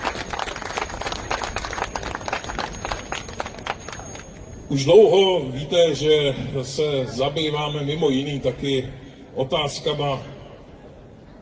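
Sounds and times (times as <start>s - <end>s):
audience applause: 0.0s - 4.4s
speech: 4.7s - 10.3s.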